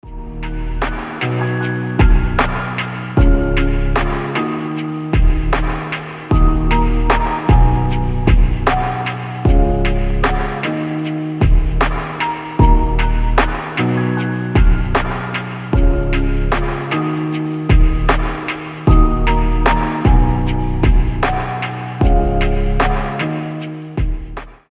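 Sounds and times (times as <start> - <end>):
slowed reverb music: 0.0 - 24.5.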